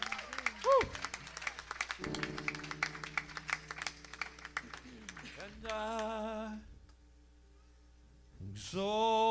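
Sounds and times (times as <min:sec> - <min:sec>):
audience clapping hands: 0:00.0 - 0:06.3
speech: 0:08.7 - 0:09.2.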